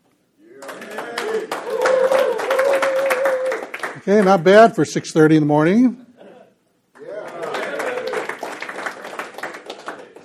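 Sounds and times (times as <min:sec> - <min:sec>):
whooping and cheering voices: 0:00.4 - 0:03.8, 0:07.0 - 0:08.5
audience applause: 0:00.6 - 0:04.4, 0:07.0 - 0:10.2
speech: 0:04.0 - 0:06.0.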